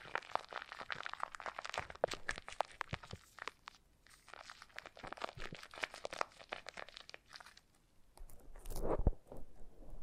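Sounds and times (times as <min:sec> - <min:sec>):
foam being massaged and squeezed: 0:00.0 - 0:07.7.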